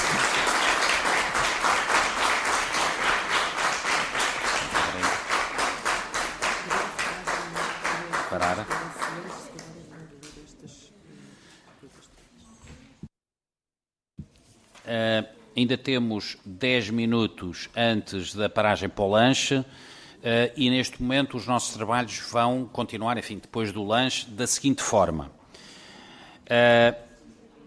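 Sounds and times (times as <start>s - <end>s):
crowd clapping in unison: 0.0s - 10.4s
speech: 8.4s - 8.8s, 14.9s - 25.4s, 26.5s - 27.1s.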